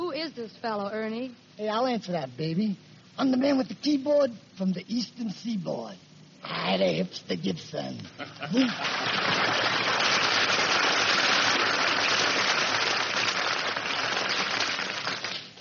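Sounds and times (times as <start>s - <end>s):
speech: 0.3s - 10.1s
audience applause: 8.5s - 15.5s.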